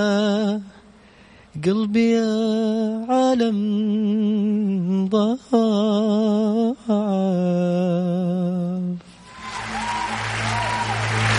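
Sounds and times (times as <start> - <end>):
speech: 0.0 - 0.7, 1.6 - 8.5
applause sound effect: 9.2 - 11.3.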